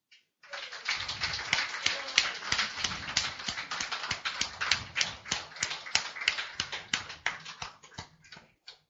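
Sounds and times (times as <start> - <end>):
audience applause: 0.4 - 7.8.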